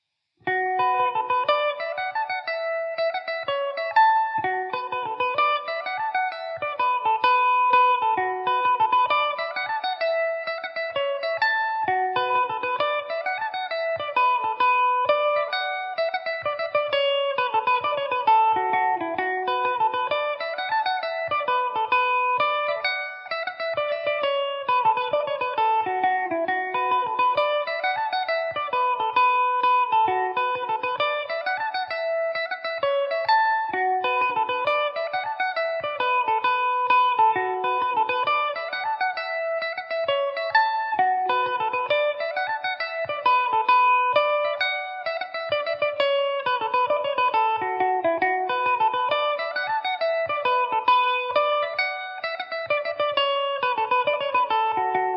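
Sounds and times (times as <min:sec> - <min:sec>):
Irish mandolin tune in B minor: 0:00.4 - 0:55.1.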